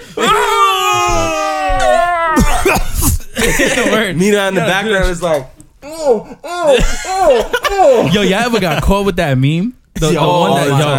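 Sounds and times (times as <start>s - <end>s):
voice imitating loud moaning: 0.2s - 2.8s, 5.8s - 8.1s
laughter: 1.7s - 5.2s, 6.0s - 8.9s
speech: 3.5s - 10.9s.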